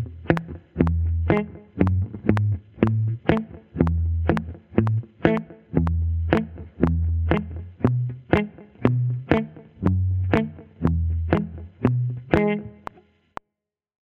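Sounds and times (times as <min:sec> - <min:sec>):
slow blues music: 0:00.0 - 0:13.0.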